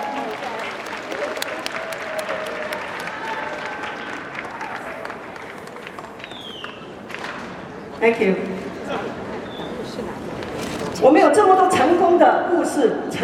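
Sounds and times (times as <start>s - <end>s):
warm applause from audience: 0.0s - 7.2s
speech: 8.0s - 9.0s, 11.0s - 13.2s.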